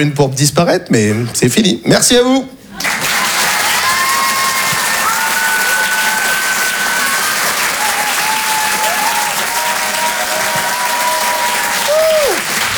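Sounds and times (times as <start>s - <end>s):
speech: 0.0s - 3.1s
audience applause: 2.8s - 12.7s.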